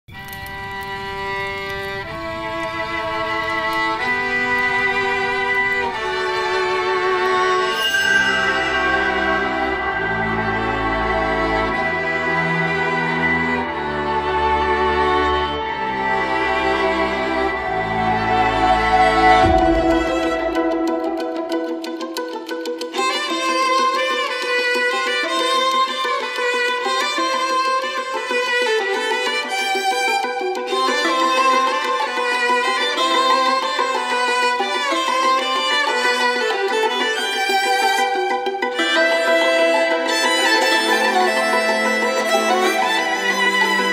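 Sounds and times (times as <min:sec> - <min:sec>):
dramatic violin music: 0:00.1 - 0:43.9.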